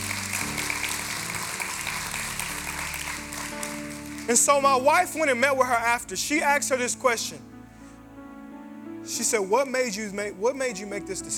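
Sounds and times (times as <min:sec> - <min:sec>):
audience clapping: 0:00.0 - 0:05.0
speech: 0:04.3 - 0:07.5, 0:09.1 - 0:11.3.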